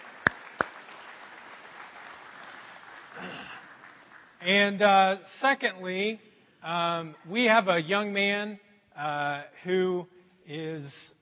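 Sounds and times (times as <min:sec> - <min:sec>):
audience clapping: 0:00.0 - 0:04.8
speech: 0:04.4 - 0:11.2.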